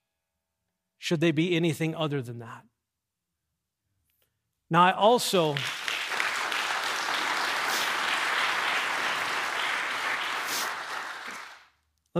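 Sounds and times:
speech: 1.1s - 2.7s, 4.7s - 5.8s
congregation clapping during a sermon: 5.2s - 11.8s.

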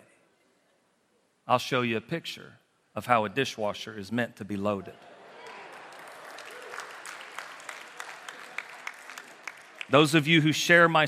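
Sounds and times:
speech: 1.5s - 5.1s, 9.9s - 11.0s
audience applauding: 5.3s - 10.5s.

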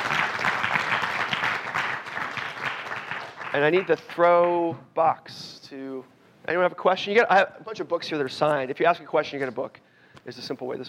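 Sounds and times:
audience applause: 0.0s - 4.0s
speech: 3.6s - 10.8s.

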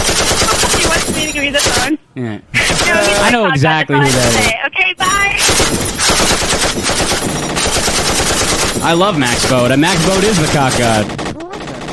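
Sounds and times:
loud rapid automatic gunfire sound effect: 0.0s - 1.9s, 2.6s - 3.3s, 5.4s - 11.9s
speech: 1.4s - 2.5s, 3.4s - 7.2s, 8.8s - 11.3s.

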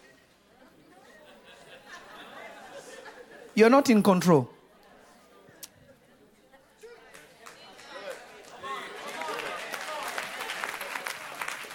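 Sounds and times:
laughter: 0.6s - 3.6s
speech: 3.6s - 4.5s
audience clapping: 7.1s - 11.7s.

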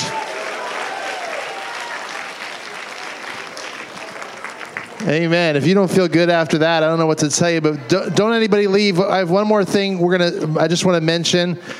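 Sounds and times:
audience clapping: 0.0s - 5.5s
speech: 5.0s - 11.7s.

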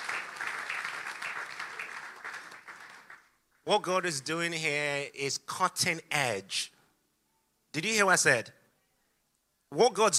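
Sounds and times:
audience round of applause: 0.0s - 3.4s
speech: 3.7s - 6.8s, 7.7s - 8.6s, 9.7s - 10.1s.

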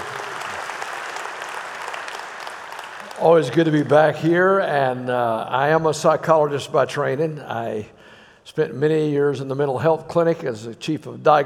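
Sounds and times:
audience applauding to welcome a speaker to the stage: 0.0s - 4.1s
speech: 3.2s - 11.4s.

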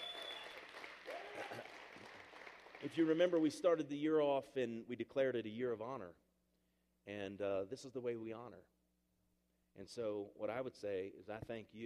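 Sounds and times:
audience hand clapping: 0.0s - 3.6s
speech: 2.8s - 6.2s, 7.1s - 8.7s, 9.8s - 11.8s.

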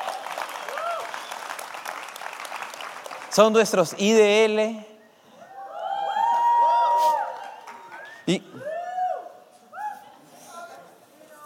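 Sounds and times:
audience applause: 0.0s - 4.0s, 6.1s - 8.4s
speech: 3.3s - 4.9s, 8.3s - 8.5s.

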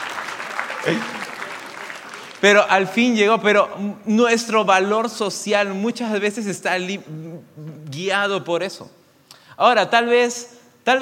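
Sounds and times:
crowd applauding: 0.0s - 3.0s
speech: 0.8s - 1.2s, 2.4s - 9.0s, 9.6s - 11.0s.

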